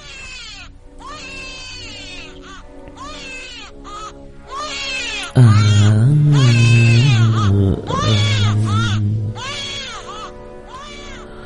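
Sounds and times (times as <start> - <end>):
plaintive eerie weeping voice at night: 5.2 - 11.4
speech: 5.4 - 6.3.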